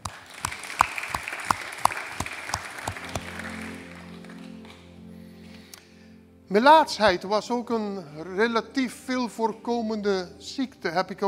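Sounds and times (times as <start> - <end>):
audience applause: 0.0 - 4.8
speech: 6.5 - 11.2.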